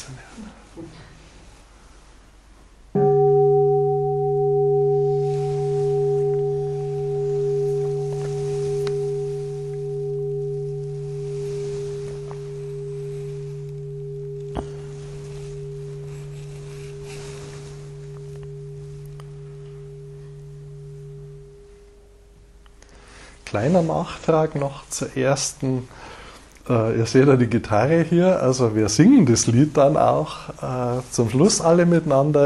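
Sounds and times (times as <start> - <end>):
ringing bell tone: 3.0 - 23.2
speech: 23.6 - 26.0, 26.7 - 32.4.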